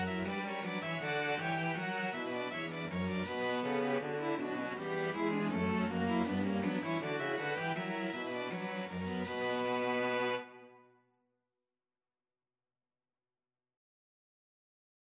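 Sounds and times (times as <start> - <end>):
string quartet playing a bourree: 0.0 - 10.7.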